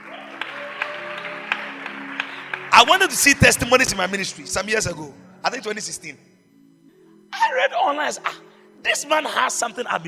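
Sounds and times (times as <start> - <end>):
audience clapping: 0.0 - 4.5
speech: 2.8 - 6.3, 7.4 - 10.0.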